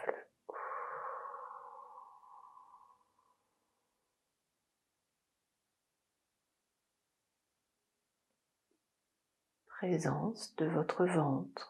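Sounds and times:
slow belly breathing during a sophrology exercise: 0.0s - 4.2s
speech: 9.8s - 11.6s.

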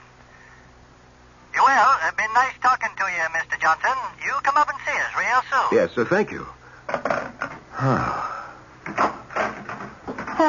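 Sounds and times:
speech: 2.1s - 6.6s, 7.8s - 8.2s
back door opening and shutting: 8.9s - 10.4s.

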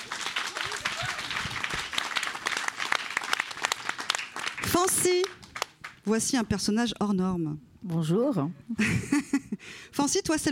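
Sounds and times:
audience applause: 0.0s - 6.1s
speech: 4.7s - 5.4s, 6.0s - 10.5s
laughter: 8.7s - 9.6s.

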